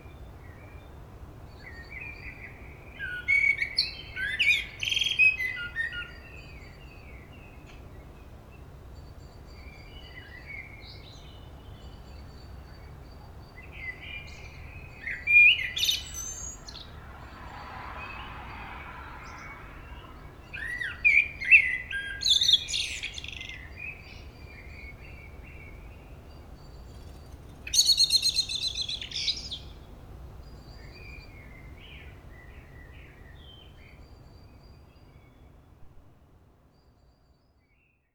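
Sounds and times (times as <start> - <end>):
common blackbird song: 0.0 - 35.7, 36.6 - 38.1.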